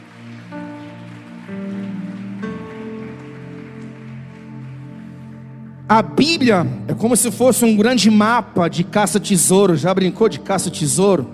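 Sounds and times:
audience applauding loudly: 0.0 - 5.9
speech: 5.9 - 11.3.

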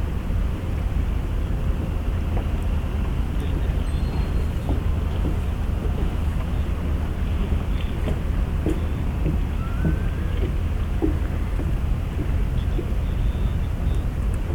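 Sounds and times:
engines and machinery at the Port of Yokohama: 0.0 - 14.5
brief rising whine: 9.4 - 10.6.

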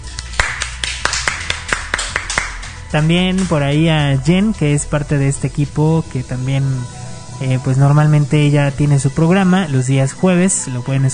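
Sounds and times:
applause: 0.0 - 2.8
speech: 2.9 - 11.1.

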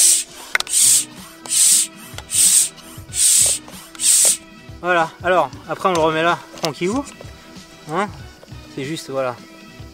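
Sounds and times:
small hand pump being pumped: 0.0 - 4.4
speech: 4.8 - 7.3, 7.9 - 8.2, 8.8 - 9.5.

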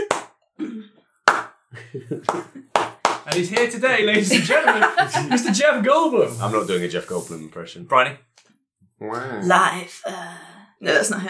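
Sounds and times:
slow clap: 0.0 - 0.4, 1.3 - 1.6, 2.2 - 3.8
laughter: 1.7 - 6.3
speech: 1.9 - 8.3, 9.0 - 11.2.

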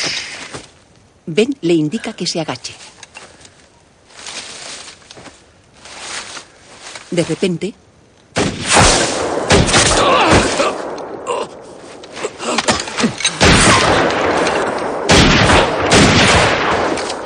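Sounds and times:
speech: 1.3 - 2.9, 7.1 - 7.9
gunshots in a film: 8.3 - 11.3, 12.7 - 17.2.

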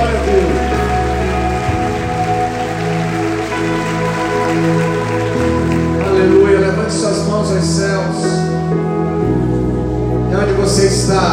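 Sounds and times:
audience applause: 0.0 - 7.3
sustained keyboard chords: 0.0 - 11.3.

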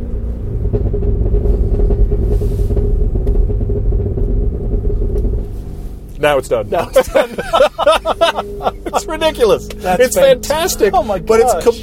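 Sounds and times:
car engine rumbling: 0.0 - 11.8
car exhaust pops and crackles: 0.0 - 11.8
speech: 6.2 - 11.8
laughter: 6.8 - 10.2.

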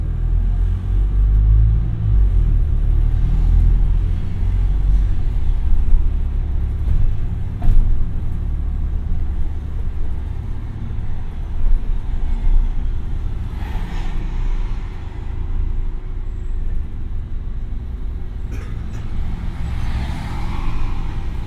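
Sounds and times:
bus 49 engine rumble in Brighton: 0.0 - 21.4.

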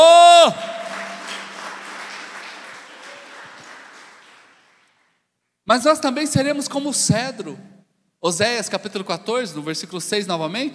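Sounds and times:
audience applauding loudly: 0.0 - 5.1
speech: 5.7 - 10.7.

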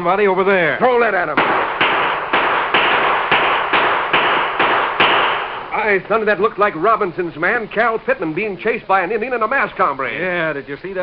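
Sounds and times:
speech: 0.0 - 1.6, 5.8 - 11.0
gunshots in a radio drama: 1.2 - 5.8.

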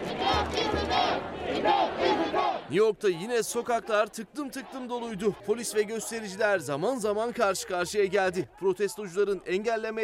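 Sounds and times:
protest crowd chanting slogans: 0.0 - 2.8, 3.5 - 6.6
speech: 2.7 - 10.0.

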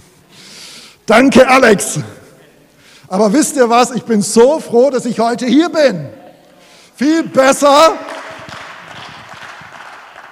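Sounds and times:
speech: 1.1 - 2.2, 3.1 - 6.2, 7.0 - 8.1
audience applause: 8.1 - 10.2.

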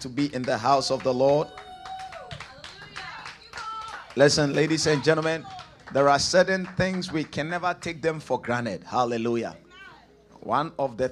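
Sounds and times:
speech: 0.0 - 1.7, 4.2 - 9.6, 10.4 - 11.1
audience clapping: 0.1 - 8.6.

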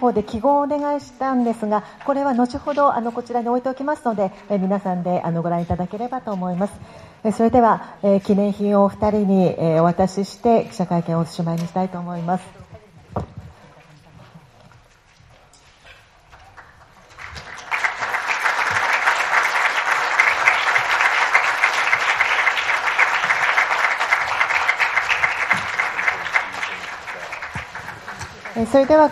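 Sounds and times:
speech: 0.0 - 12.6, 28.7 - 29.1
audience applause: 16.3 - 29.1.

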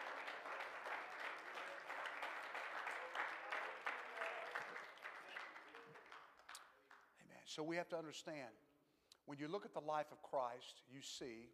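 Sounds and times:
audience clapping hands: 0.0 - 7.1
speech: 7.6 - 8.7, 9.3 - 11.5.

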